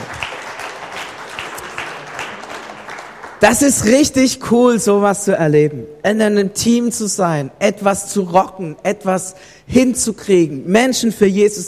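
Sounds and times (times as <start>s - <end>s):
audience applause: 0.0s - 3.4s
speech: 3.4s - 11.6s.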